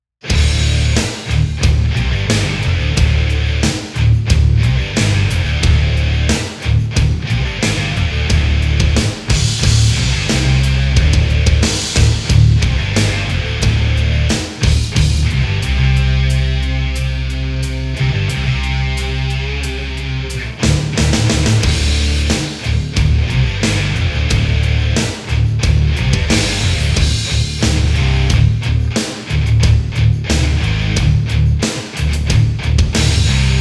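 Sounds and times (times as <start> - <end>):
guitar: 0.2 - 33.5.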